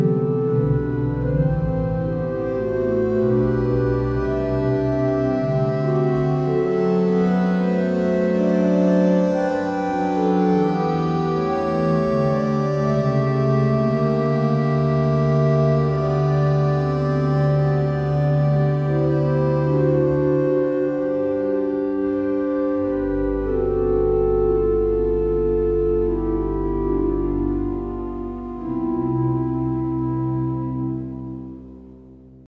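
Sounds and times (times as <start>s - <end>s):
physharmonica playing: 0.0s - 31.6s.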